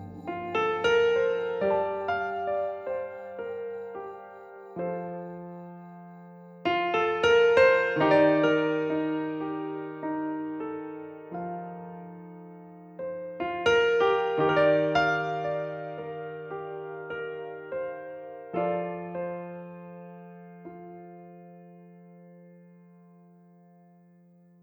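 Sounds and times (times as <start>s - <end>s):
piano: 0.0s - 24.6s.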